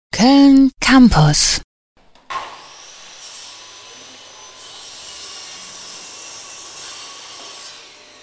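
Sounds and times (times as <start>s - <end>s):
speech: 0.2s - 1.7s
sawing in a film school workshop in Cologne: 2.2s - 8.2s
single knock in a film school workshop: 2.3s - 2.6s.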